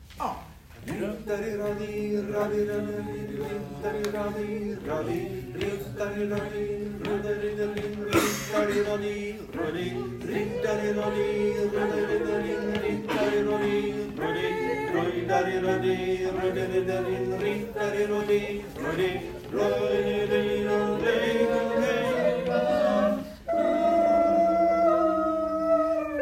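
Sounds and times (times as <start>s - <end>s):
tenor singing: 0.7s - 26.2s.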